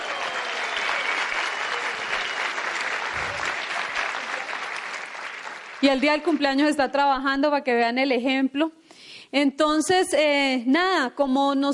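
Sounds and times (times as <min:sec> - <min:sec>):
audience applause: 0:00.0 - 0:06.8
speech: 0:05.8 - 0:11.7.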